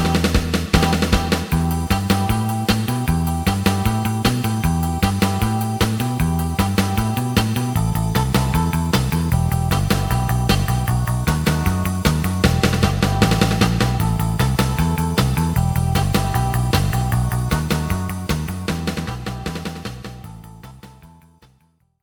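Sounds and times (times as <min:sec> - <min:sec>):
two lead guitars: 0:00.2 - 0:20.7.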